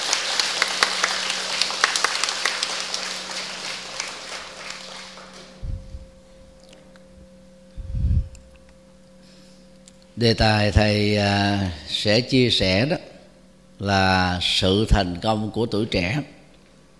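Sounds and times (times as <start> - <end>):
audience applause: 0.0 - 5.6
speech: 10.2 - 13.0, 13.8 - 16.4.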